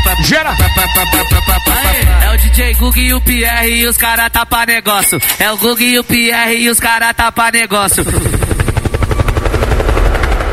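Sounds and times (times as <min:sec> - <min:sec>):
dense busy DJ mix at a sound-system party: 0:00.0 - 0:07.1
speech: 0:00.2 - 0:08.4
helicopter sound effect in a live DJ set at a party: 0:07.9 - 0:10.5.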